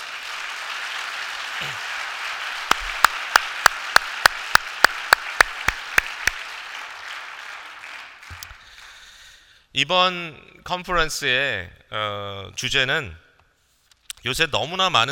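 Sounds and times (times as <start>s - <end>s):
sharp evenly spaced claps: 0.0s - 9.0s
audience applause: 0.0s - 9.2s
speech: 1.6s - 1.9s, 9.8s - 13.2s, 14.2s - 15.1s.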